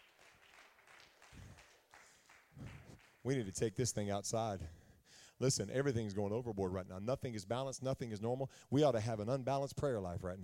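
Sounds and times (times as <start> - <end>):
crowd clapping: 0.0 - 3.6
speech: 3.2 - 4.8, 5.4 - 10.4.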